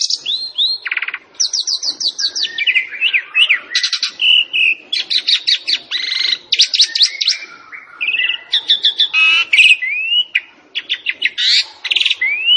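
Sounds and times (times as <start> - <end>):
Javan pied starling song with buzzy trills, chatters and whistled notes: 0.0 - 12.5.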